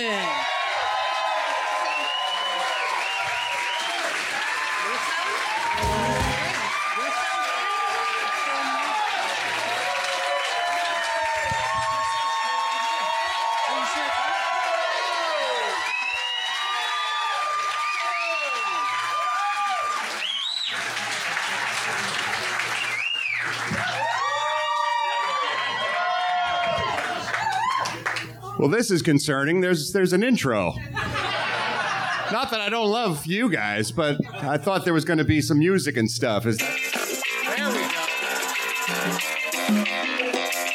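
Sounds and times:
live comedy show audience cheering and applauding: 0:00.0 - 0:28.5, 0:36.8 - 0:40.7
speech: 0:28.6 - 0:31.1, 0:32.3 - 0:36.8
laughter: 0:30.8 - 0:32.7.

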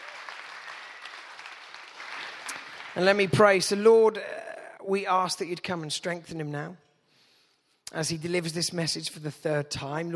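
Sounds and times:
audience applause: 0:00.0 - 0:03.3
speech: 0:03.0 - 0:06.8, 0:07.9 - 0:10.1.

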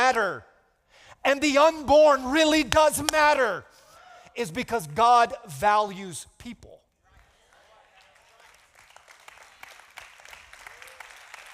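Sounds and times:
speech: 0:00.1 - 0:00.5, 0:01.2 - 0:03.7, 0:04.4 - 0:06.8
audience clapping: 0:07.1 - 0:11.5.

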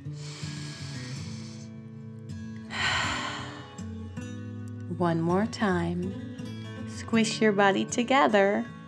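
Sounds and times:
deep breath in and out during a children's bedtime relaxation exercise: 0:00.0 - 0:01.9, 0:02.7 - 0:03.8
soft steady tonal music: 0:00.0 - 0:08.8
speech: 0:05.0 - 0:06.3, 0:07.1 - 0:08.8.

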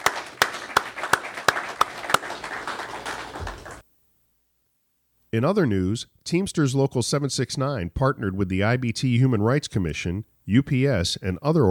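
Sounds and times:
round of applause: 0:00.0 - 0:03.8
speech: 0:05.3 - 0:11.7.

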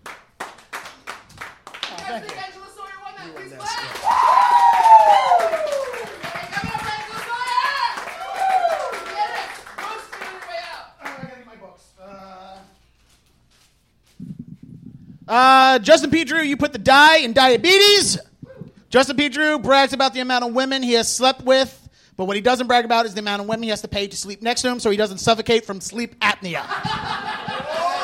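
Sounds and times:
audience clapping: 0:00.0 - 0:11.5
speech: 0:02.1 - 0:02.6, 0:03.2 - 0:04.4, 0:15.3 - 0:18.3, 0:18.9 - 0:27.2
laughter: 0:26.6 - 0:28.0.

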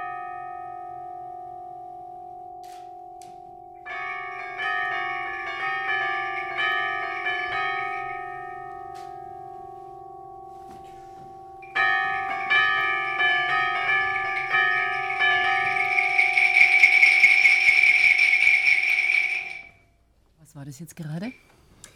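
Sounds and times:
three percussionists playing in rehearsal: 0:02.7 - 0:09.1, 0:11.6 - 0:19.8
speech: 0:20.8 - 0:21.5.

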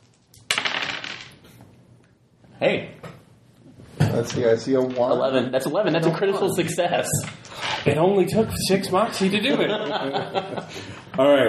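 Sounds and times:
dice rolling: 0:00.0 - 0:01.5
speech: 0:02.6 - 0:03.0, 0:04.2 - 0:11.4
laughter: 0:08.9 - 0:11.1.

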